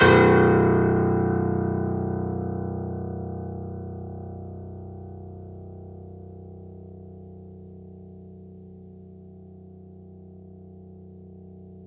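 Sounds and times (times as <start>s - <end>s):
grand piano playing fortissimo B1 off mic: 0.0s - 5.3s.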